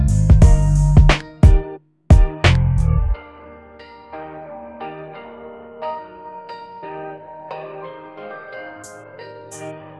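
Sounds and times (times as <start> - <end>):
trap hip hop beat: 0.0 - 3.2.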